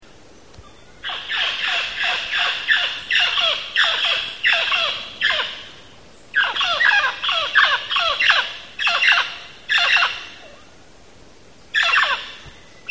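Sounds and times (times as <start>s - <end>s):
mealy parrot squawking in Belize: 0.7s - 5.7s, 6.4s - 10.4s.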